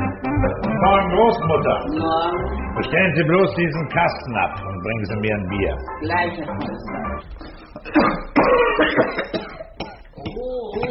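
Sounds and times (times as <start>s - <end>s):
speech: 0.4s - 8.6s
person coughing: 7.8s - 10.9s.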